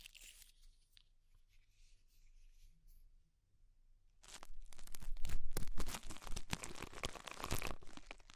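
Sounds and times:
ear cleaning crackling and scraping with rhinestone and clay removal: 0:04.2 - 0:08.3.

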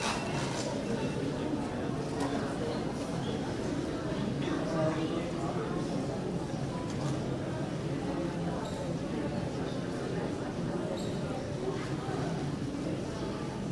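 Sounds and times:
people chattering in an airport terminal: 0:00.0 - 0:13.7.

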